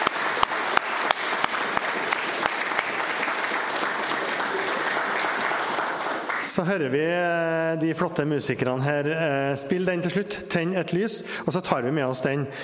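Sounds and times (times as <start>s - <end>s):
audience applause: 0.0s - 6.6s
speech: 6.6s - 12.6s.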